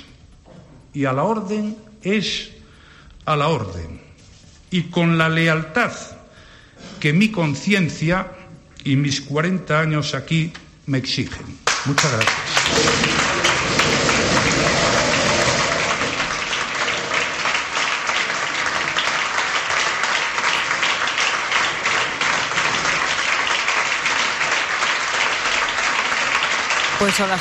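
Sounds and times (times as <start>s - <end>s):
speech: 1.0s - 2.6s, 3.2s - 4.1s, 4.7s - 6.2s, 6.8s - 13.2s, 27.1s - 27.4s
PP party members applauding a farewell speech: 11.6s - 27.4s.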